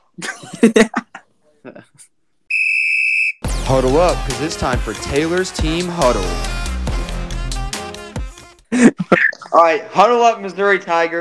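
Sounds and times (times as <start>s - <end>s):
speech: 0.2s - 1.0s, 4.0s - 6.6s, 8.8s - 11.2s
referee whistle blown: 2.5s - 3.8s.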